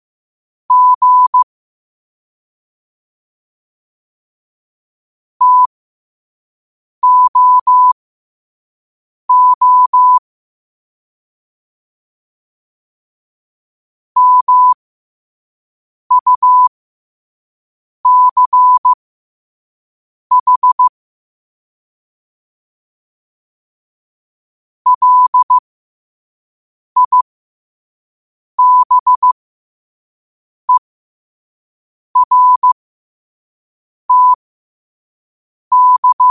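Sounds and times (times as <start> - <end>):
morse code at 5 wpm: 0.7 - 1.4, 5.4 - 5.7, 7.0 - 8.0, 9.3 - 10.2, 14.2 - 14.8, 16.1 - 16.7, 18.1 - 19.0, 20.3 - 20.9, 24.9 - 25.6, 27.0 - 27.2, 28.6 - 29.4, 32.2 - 32.8, 34.1 - 34.4, 35.7 - 36.3.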